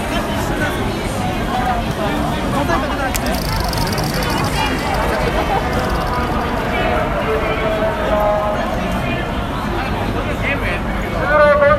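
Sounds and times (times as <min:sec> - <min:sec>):
Halloween crowd chattering at Shibuya: 0:00.0 - 0:11.6
voices calling out: 0:02.8 - 0:09.3.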